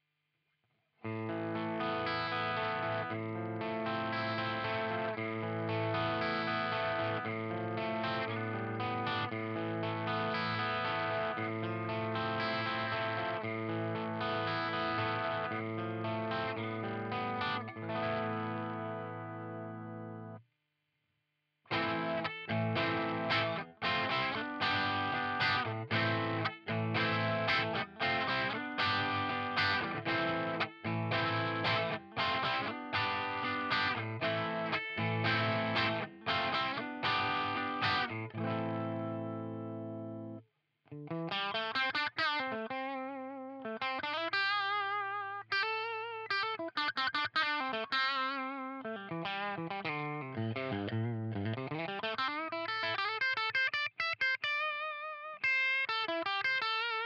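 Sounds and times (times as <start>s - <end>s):
Epiphone Coronet electric guitar with crunch: 1.0s - 20.4s, 21.7s - 57.0s.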